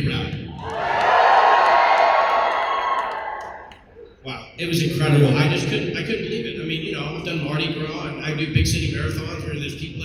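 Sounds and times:
audience hooting and cheering: 0:00.5 - 0:04.1
speech: 0:04.6 - 0:06.5, 0:07.2 - 0:10.0.

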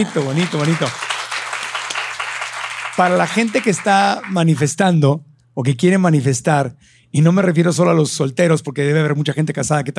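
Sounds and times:
speech: 0:00.0 - 0:01.0, 0:03.0 - 0:09.9
crowd applauding: 0:00.0 - 0:04.7.

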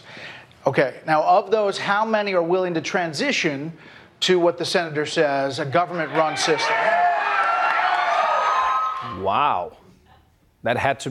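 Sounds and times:
speech: 0:00.6 - 0:07.0, 0:09.0 - 0:09.8, 0:10.6 - 0:11.0
crowd cheering for a plan for Medicare for all: 0:05.9 - 0:09.8.

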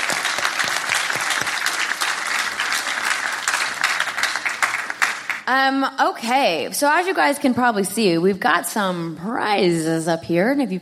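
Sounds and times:
audience applause: 0:00.0 - 0:05.5
speech: 0:05.5 - 0:10.8.

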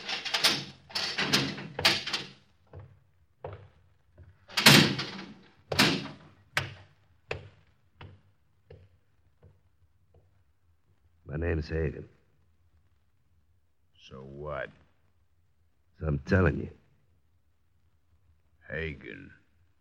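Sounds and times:
prison cell door number 27 opening with metallic clanks: 0:00.0 - 0:02.4, 0:04.5 - 0:06.8
speech: 0:11.4 - 0:12.2, 0:16.0 - 0:16.8, 0:18.7 - 0:19.4.

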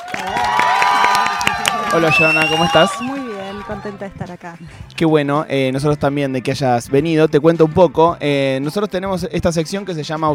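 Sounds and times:
audience clapping: 0:00.0 - 0:04.1
cheering voices: 0:00.0 - 0:04.2
speech: 0:01.9 - 0:10.3.

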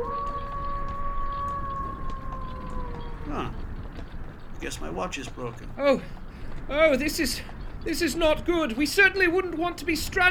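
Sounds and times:
wolf howling: 0:00.0 - 0:03.9
speech: 0:04.6 - 0:10.2.

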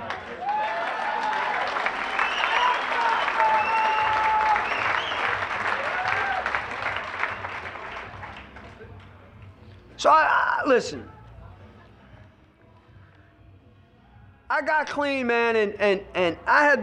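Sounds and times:
audience clapping: 0:00.0 - 0:09.2
speech: 0:10.0 - 0:11.2, 0:14.6 - 0:16.8.

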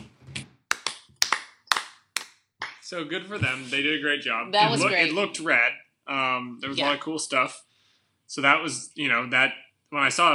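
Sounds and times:
slow clap: 0:00.4 - 0:02.9
speech: 0:02.9 - 0:07.7, 0:08.3 - 0:10.3.

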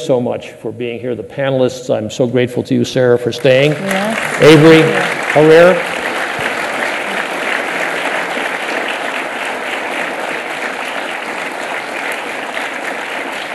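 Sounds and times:
speech: 0:00.0 - 0:06.0
audience applause: 0:03.4 - 0:13.5.

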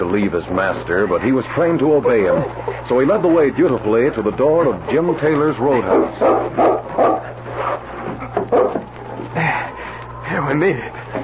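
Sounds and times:
speech: 0:00.0 - 0:07.1, 0:10.6 - 0:11.0
low hum: 0:00.0 - 0:11.2
dog barking and yipping: 0:05.6 - 0:08.9.

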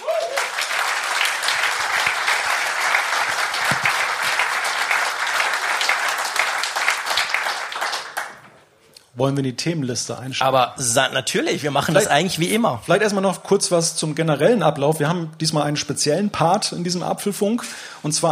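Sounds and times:
audience applause: 0:00.0 - 0:08.5
speech: 0:09.2 - 0:18.3.

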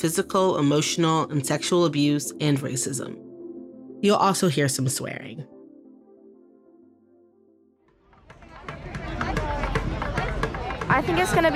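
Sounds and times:
speech: 0:00.0 - 0:03.3, 0:04.0 - 0:05.6, 0:11.0 - 0:11.5
crowd babble outside a gymnastics tour event in Houston, Texas: 0:08.1 - 0:11.5.

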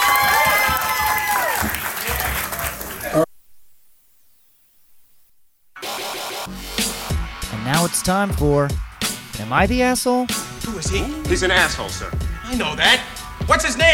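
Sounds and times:
audience applause and cheering: 0:00.0 - 0:03.3, 0:05.8 - 0:09.9
speech: 0:08.0 - 0:08.8, 0:09.4 - 0:13.9.

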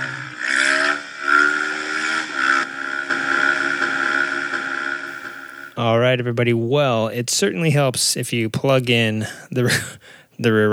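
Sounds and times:
vehicle engine revving for a wheelie: 0:00.0 - 0:05.8
speech: 0:05.8 - 0:10.7.

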